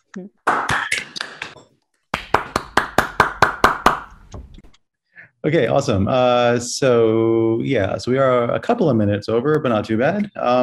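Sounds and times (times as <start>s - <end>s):
speech: 0.2s - 0.7s, 5.4s - 10.6s
people clapping over a video call connection: 0.5s - 4.2s.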